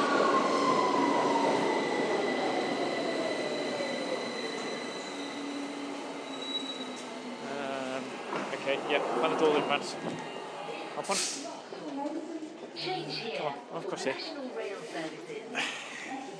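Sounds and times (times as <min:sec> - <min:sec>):
subway train arriving at platform: 0:00.0 - 0:16.3
subway train wheel squeals: 0:03.8 - 0:07.2
speech: 0:08.7 - 0:10.4, 0:11.0 - 0:11.6, 0:12.8 - 0:16.3.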